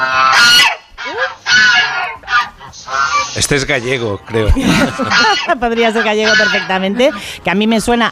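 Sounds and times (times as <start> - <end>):
guard geese honking an alarm: 0.0 - 7.6
speech: 3.4 - 8.1
laughter: 4.3 - 5.8.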